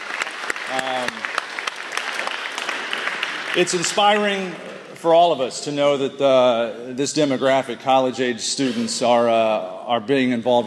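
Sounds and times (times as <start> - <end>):
crowd applauding: 0.0 - 5.3
speech: 0.7 - 1.3, 3.6 - 10.6.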